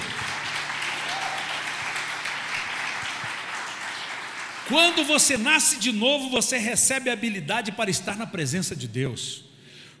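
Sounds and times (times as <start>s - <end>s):
audience applause: 0.0s - 5.4s
speech: 4.7s - 9.5s.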